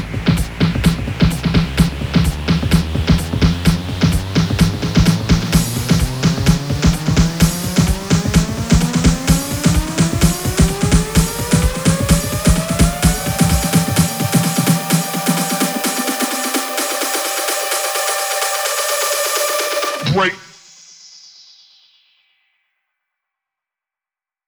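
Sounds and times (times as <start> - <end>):
128 BPM house electro fills: 0.0 - 20.6.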